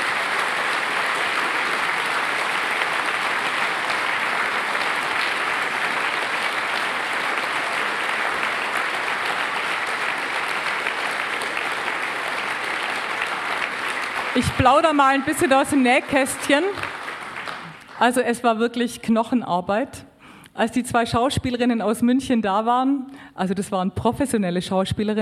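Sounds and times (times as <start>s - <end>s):
large audience applause: 0.0s - 18.0s
speech: 14.4s - 16.9s, 18.0s - 25.2s.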